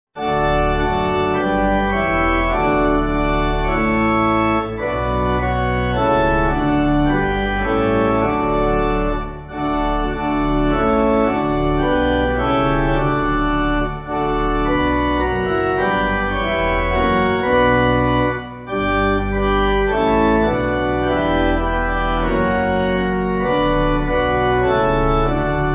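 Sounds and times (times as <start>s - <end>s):
pipe organ backing: 0.2s - 25.7s.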